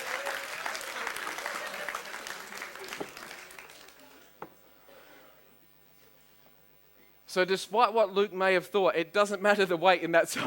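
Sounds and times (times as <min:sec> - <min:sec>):
audience clapping: 0:00.0 - 0:04.4
speech: 0:07.3 - 0:10.4.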